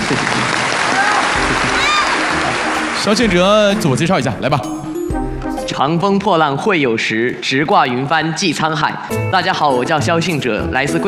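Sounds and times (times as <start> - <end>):
studio audience applause for two contestants on a quiz show: 0.0 - 4.0
speech: 3.0 - 4.8, 5.8 - 11.0.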